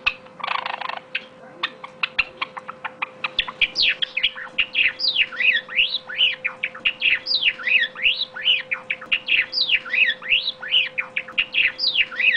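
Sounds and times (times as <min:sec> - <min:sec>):
Java sparrow calling: 0:00.0 - 0:12.3.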